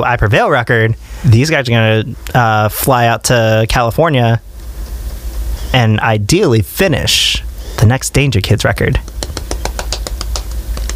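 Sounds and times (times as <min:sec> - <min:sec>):
speech: 0:00.0 - 0:04.5, 0:05.7 - 0:09.4
low rumbling hum: 0:00.0 - 0:10.9
hand claps: 0:09.0 - 0:10.9.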